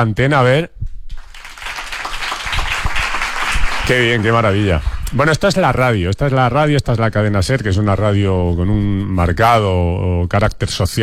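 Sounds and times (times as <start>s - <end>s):
speech: 0.0s - 0.8s, 3.9s - 11.0s
applause: 1.1s - 5.6s.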